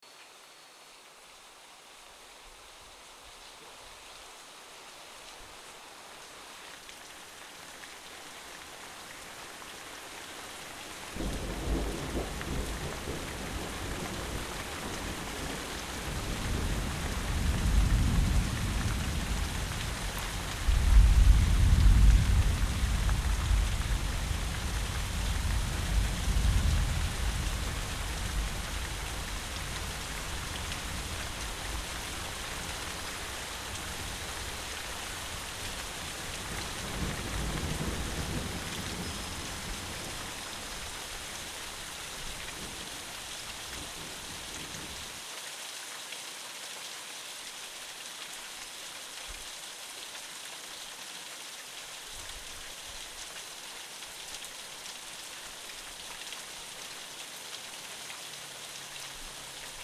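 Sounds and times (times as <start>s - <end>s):
rain: 0.0s - 59.8s.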